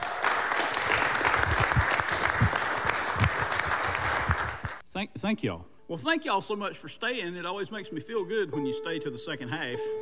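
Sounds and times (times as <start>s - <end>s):
concert audience clapping welcoming a performer back on stage: 0.0s - 4.8s
speech: 5.0s - 10.0s.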